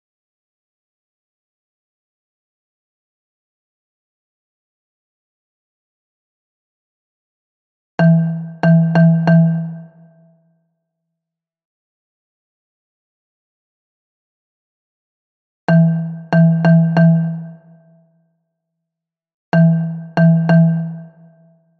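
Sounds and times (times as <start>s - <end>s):
bass xylophone: 8.0s - 9.9s, 15.7s - 17.6s, 19.6s - 21.2s.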